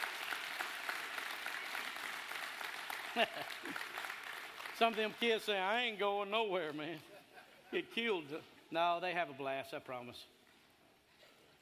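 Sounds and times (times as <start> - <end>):
audience applause: 0.0 - 6.0
speech: 3.2 - 4.1, 4.8 - 7.1, 7.7 - 10.4.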